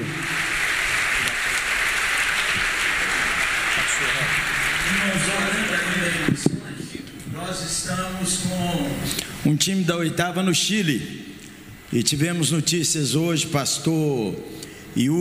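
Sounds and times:
audience applause: 0.0 - 6.3
speech: 7.5 - 11.3, 11.9 - 15.1.

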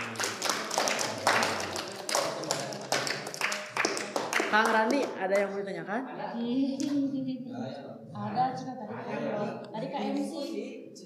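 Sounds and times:
crowd clapping: 0.0 - 5.6
speech: 4.5 - 10.8.

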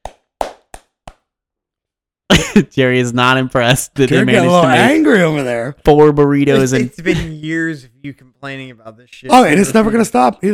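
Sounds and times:
hand claps: 0.0 - 1.3
speech: 2.4 - 10.5.

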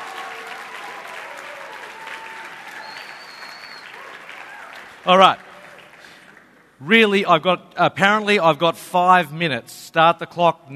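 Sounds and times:
audience applause: 0.0 - 6.8
speech: 5.0 - 5.4, 6.8 - 10.7.

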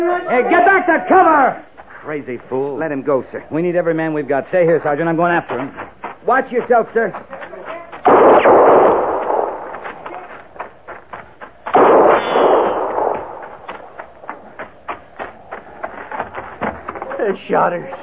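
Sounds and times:
speech: 0.2 - 7.5, 17.3 - 18.0
gunshots: 8.0 - 10.3, 11.7 - 14.3.

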